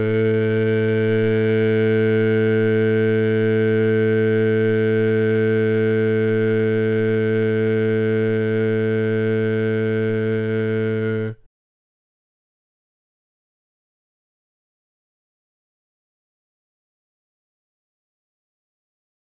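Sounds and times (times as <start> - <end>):
barbershop bass singing tags: 0.0 - 11.5.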